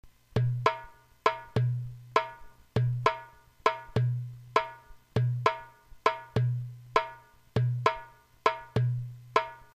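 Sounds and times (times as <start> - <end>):
doumbek drum: 0.3 - 9.7.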